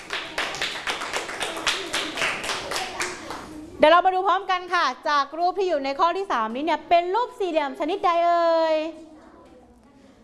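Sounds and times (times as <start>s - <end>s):
clapping: 0.0s - 3.5s
speech: 3.8s - 9.1s.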